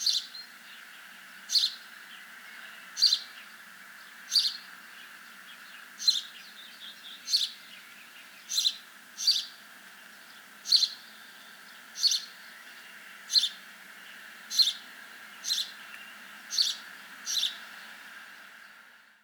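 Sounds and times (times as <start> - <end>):
house sparrow Passer domesticus chirping: 0.0 - 0.5, 1.5 - 1.8, 2.9 - 3.4, 4.2 - 4.8, 5.5 - 17.7.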